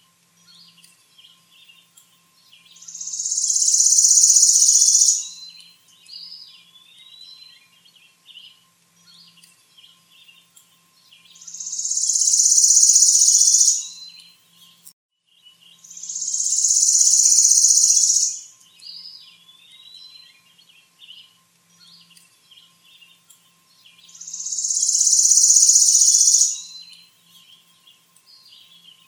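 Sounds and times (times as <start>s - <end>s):
bird song with buzzy trills: 0.0s - 29.0s.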